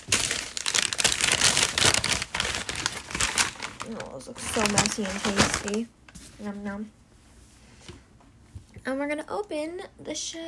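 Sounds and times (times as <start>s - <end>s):
plastic donut packaging being peeled and pulled open: 0.0s - 5.9s
speech: 3.9s - 7.0s, 8.8s - 10.4s.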